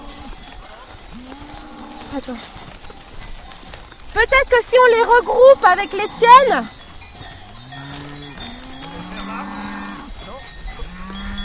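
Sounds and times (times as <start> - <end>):
faint ringing bell tones: 0.0 - 11.4
cattle in a herd lowing: 1.0 - 2.5, 4.7 - 6.7, 7.3 - 10.2, 10.8 - 11.4
speech: 1.1 - 2.7, 4.2 - 6.8.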